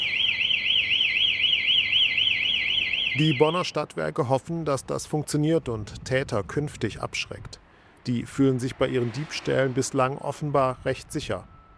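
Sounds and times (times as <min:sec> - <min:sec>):
charging station anti-theft alarm sounding: 0:00.0 - 0:03.8
speech: 0:03.2 - 0:11.5.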